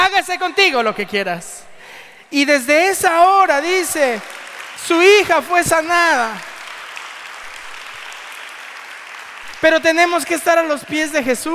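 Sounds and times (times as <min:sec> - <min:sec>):
speech: 0:00.2 - 0:01.7, 0:02.3 - 0:06.5, 0:09.6 - 0:11.5
audience applause: 0:04.2 - 0:10.3.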